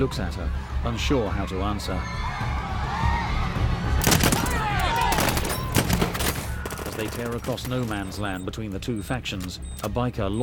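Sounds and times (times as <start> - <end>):
speech: 0.0 - 2.4, 7.0 - 10.4
voices and general street commotion: 0.0 - 10.4
gunshots fired into the air amid street chaos: 4.0 - 8.0.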